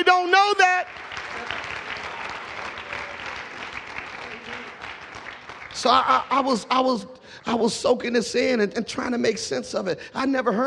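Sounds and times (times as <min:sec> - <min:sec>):
audience clapping: 0:00.0 - 0:06.7
speech: 0:05.8 - 0:10.6.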